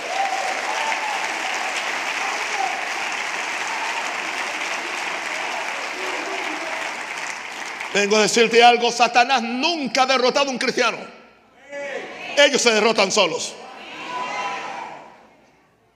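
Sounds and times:
crowd applause: 0.0 - 8.6
speech: 7.9 - 11.2, 12.4 - 13.6.

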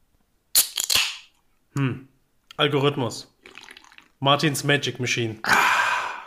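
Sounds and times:
nut being cracked between buttocks: 0.5 - 1.4
speech: 1.8 - 3.3, 4.2 - 5.7.

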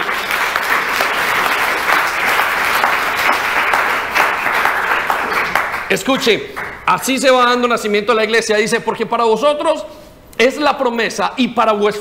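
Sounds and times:
audience applause: 0.0 - 7.0
speech: 5.9 - 11.9.

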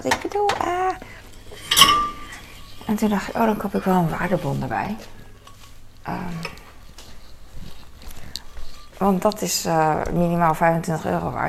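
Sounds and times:
speech: 0.0 - 1.2, 2.9 - 5.2, 6.0 - 6.6, 9.0 - 11.4
glass jar clinking while handled: 1.2 - 3.7.

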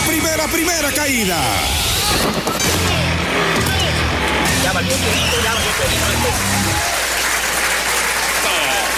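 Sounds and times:
speech: 0.1 - 3.6, 4.7 - 7.0
applause sound effect: 4.3 - 8.9.

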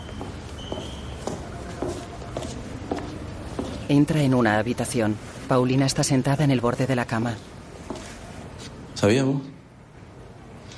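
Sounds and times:
man's footsteps walking along a hospital corridor: 0.0 - 4.2, 7.8 - 8.8
speech: 3.9 - 7.6, 9.0 - 9.5.

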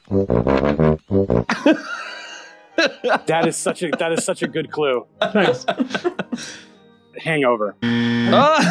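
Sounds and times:
fart: 0.1 - 1.5
speech: 0.1 - 2.1, 2.8 - 8.6
laughter: 1.5 - 6.6, 8.3 - 8.6.

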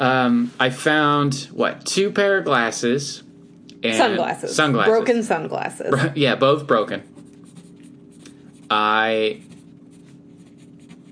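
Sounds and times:
speech: 0.0 - 7.1, 8.7 - 9.5
squeaky writing at a dining room table: 7.0 - 11.1.

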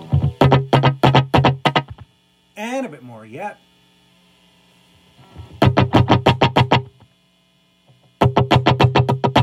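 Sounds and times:
electric guitar through slapback delay of a Tech21 Fly Rig 5 pedal: 0.0 - 2.0, 5.6 - 7.0, 8.2 - 9.4
faint hum: 0.0 - 9.4
speech: 2.9 - 3.7.

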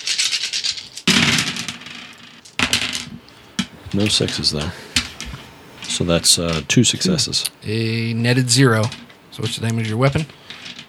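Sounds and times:
handful of dice rattling and clattering: 0.0 - 6.6, 8.8 - 10.8
speech: 3.9 - 4.9, 6.0 - 10.4.

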